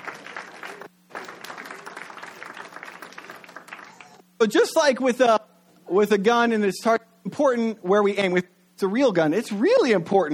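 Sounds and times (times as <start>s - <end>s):
audience applause: 0.0s - 4.2s
speech: 4.4s - 10.3s.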